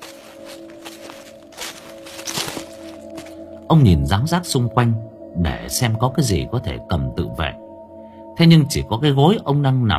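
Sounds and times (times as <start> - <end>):
footsteps approaching: 0.0 - 3.5
speech: 3.7 - 7.6, 8.4 - 9.9.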